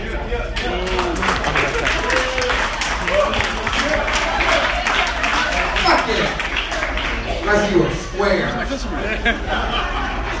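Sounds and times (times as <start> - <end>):
cheers and voices calling out: 0.2 - 8.8
audience applause: 0.6 - 7.9
laughter: 0.8 - 4.5, 8.4 - 10.3.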